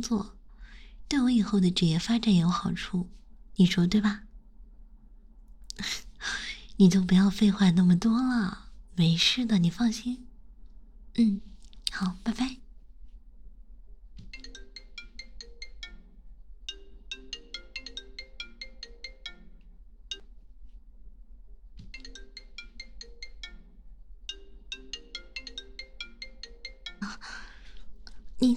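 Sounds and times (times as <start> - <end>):
speech: 0.0 - 0.4, 1.1 - 4.3, 5.8 - 10.3, 11.2 - 12.6
phone ringtone of an incoming call: 14.3 - 20.3, 21.9 - 27.7.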